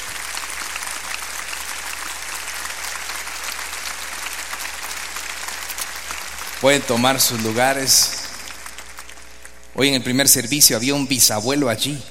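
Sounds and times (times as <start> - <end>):
audience applause: 0.0 - 9.7
speech: 6.6 - 8.2, 9.8 - 12.0.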